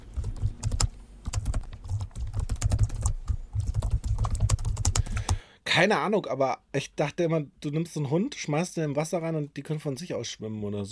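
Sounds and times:
typing on a computer keyboard: 0.1 - 5.4
speech: 5.8 - 10.9.

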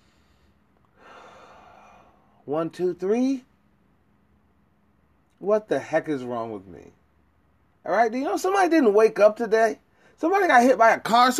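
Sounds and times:
soft deep breath: 0.0 - 2.4
speech: 2.5 - 3.5, 5.4 - 7.0, 7.8 - 11.3.

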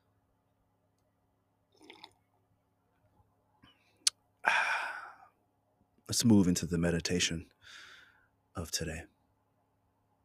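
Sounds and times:
person sipping coffee: 1.7 - 2.2
speech: 6.1 - 7.9, 8.6 - 9.2.

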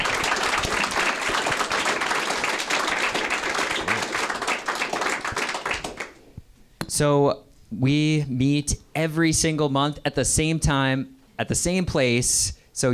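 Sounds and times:
audience applause for panelists: 0.0 - 6.2
speech: 7.0 - 12.9.

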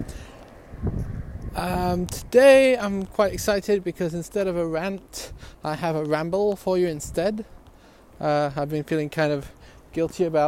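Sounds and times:
strong wind blowing: 0.0 - 3.8, 5.2 - 5.6, 6.9 - 7.6
speech: 1.6 - 7.6, 8.2 - 10.4.

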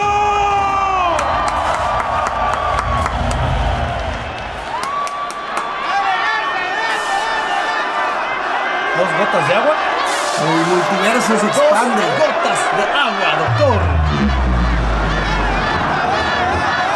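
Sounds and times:
crowd cheering and shouting welcoming rappers on stage: 0.0 - 16.9
dense roar of applause: 1.0 - 6.0
speech: 10.7 - 14.3.

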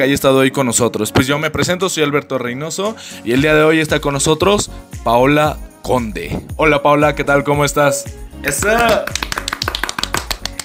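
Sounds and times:
speech: 0.0 - 9.6
person clapping: 8.4 - 10.6.

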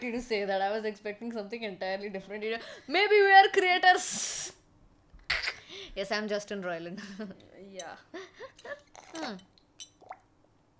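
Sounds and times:
speech: 0.0 - 4.6, 5.8 - 9.5
person sipping water: 8.6 - 10.7.

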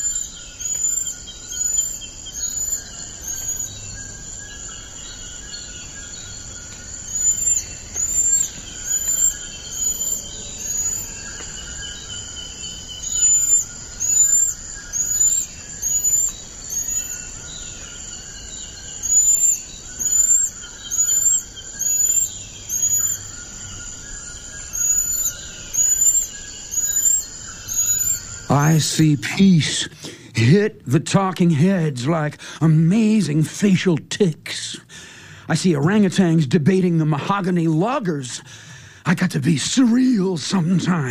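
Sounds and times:
golden lion tamarin whistled chirps: 0.0 - 29.0
speech: 29.0 - 34.6, 35.5 - 38.5, 39.1 - 41.0.

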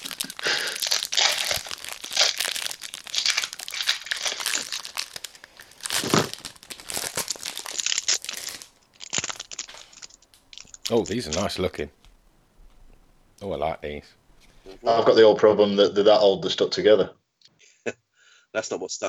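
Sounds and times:
people tearing open trading card pack wrappers: 0.0 - 15.0
speech: 10.9 - 12.0, 13.4 - 17.2, 18.6 - 19.0.

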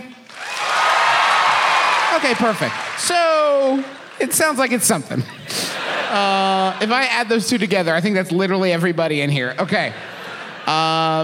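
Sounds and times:
audience round of applause: 0.2 - 5.2
faint cheers: 0.3 - 3.1
speech: 2.2 - 5.4, 6.1 - 10.1, 10.7 - 11.2
laughter: 3.4 - 7.9, 9.6 - 11.2.

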